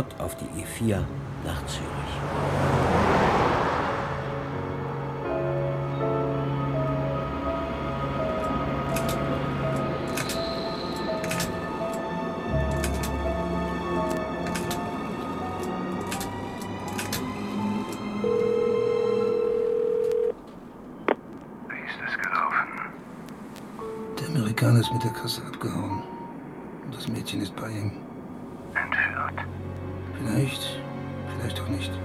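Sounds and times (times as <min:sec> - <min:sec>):
speech: 0:00.0 - 0:03.1, 0:24.9 - 0:26.1, 0:27.2 - 0:28.0
constant road noise: 0:00.0 - 0:32.0
rented car engine droning along a road in Switzerland: 0:00.0 - 0:32.0
steady low-pitched telephone dial tone: 0:18.2 - 0:20.4.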